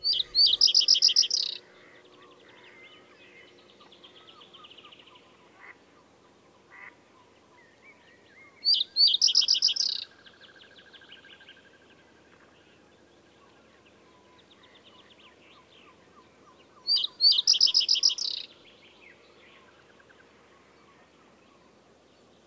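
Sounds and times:
common reed bunting singing: 0.0s - 1.6s, 8.1s - 11.5s, 14.0s - 19.7s
faint quieter bird: 0.0s - 22.4s.

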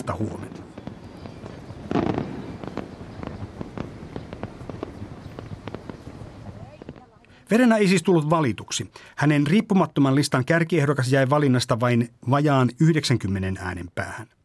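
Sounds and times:
speech: 0.0s - 0.6s, 7.5s - 14.4s
fireworks crackling above city rooftops: 0.0s - 7.3s.

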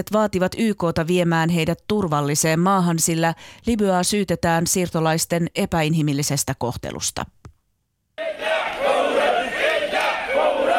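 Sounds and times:
speech: 0.0s - 7.4s
protesters shouting in Arabic: 8.2s - 10.7s.

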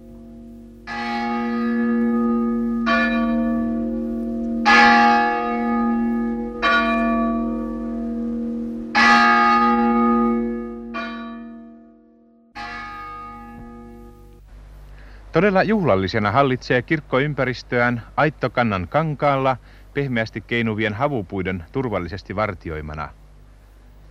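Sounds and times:
cast metal church bell tolling from high bell tower: 0.0s - 14.4s
speech: 15.4s - 23.2s.

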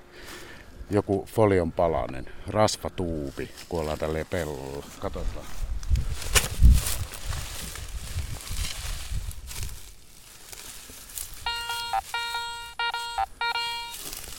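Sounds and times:
speech: 0.9s - 5.6s
scraping and rustling in soil: 3.1s - 12.2s, 13.9s - 14.3s
metal detector buzzing signal tone: 11.4s - 14.3s.

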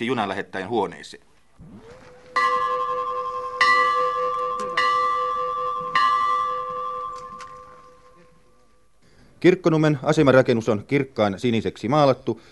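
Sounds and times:
speech: 0.0s - 2.0s, 9.4s - 12.4s
hand bell on station building wall ringing: 2.4s - 7.8s.

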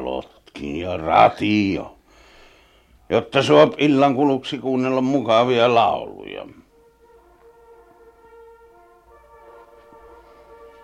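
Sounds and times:
speech: 0.1s - 2.0s, 3.1s - 6.6s
horn blown for changing of the guard: 6.3s - 10.8s.

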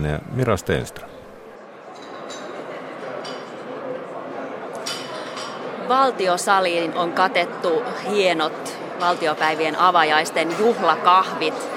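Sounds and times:
speech: 0.0s - 1.1s, 5.9s - 11.6s
cups and dishes clinking: 1.9s - 3.7s, 4.8s - 5.7s.

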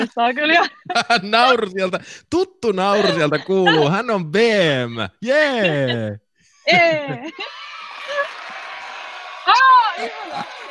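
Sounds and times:
laughter: 0.0s - 2.2s, 2.8s - 8.8s, 9.5s - 10.7s
speech: 0.0s - 7.6s, 9.5s - 10.7s
loud rising whoop and shorter yelps: 7.2s - 10.7s
audience cheering: 7.3s - 10.7s.

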